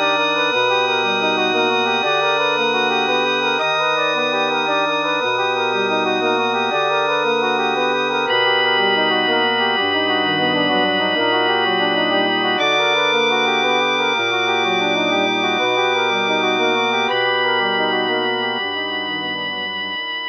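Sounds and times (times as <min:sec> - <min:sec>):
wind quartet with viola: 0:00.0 - 0:20.1.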